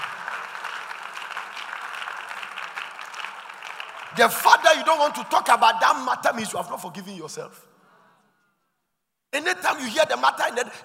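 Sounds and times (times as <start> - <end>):
audience clapping: 0.0 - 5.4
speech: 4.2 - 7.7, 9.4 - 10.8.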